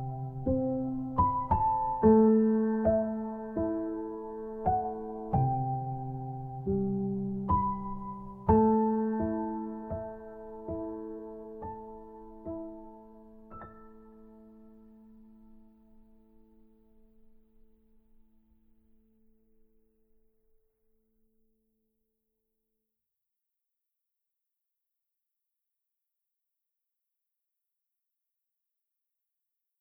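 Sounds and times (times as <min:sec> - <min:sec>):
piano: 0:00.0 - 0:20.7.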